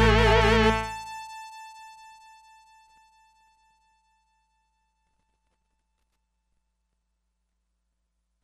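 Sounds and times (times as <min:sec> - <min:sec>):
Sequential Circuits Six-Trak synthesizer stack: 0:00.0 - 0:02.8.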